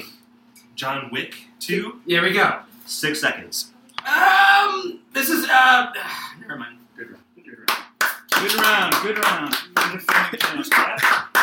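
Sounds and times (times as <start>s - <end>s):
speech: 0.8s - 7.2s, 8.4s - 11.4s
person clapping hands: 7.7s - 11.4s.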